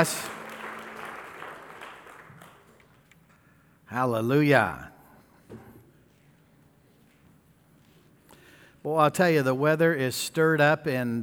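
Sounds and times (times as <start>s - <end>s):
speech: 0.0s - 0.3s, 3.9s - 4.9s, 8.8s - 11.2s
audience applauding: 0.0s - 3.1s.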